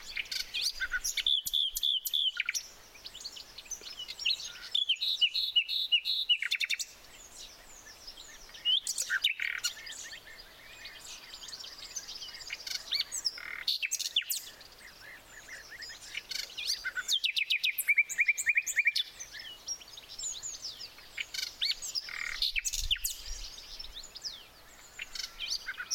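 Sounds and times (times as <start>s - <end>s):
chorus of other birds: 0.0s - 25.9s
common nightingale song: 0.0s - 25.9s.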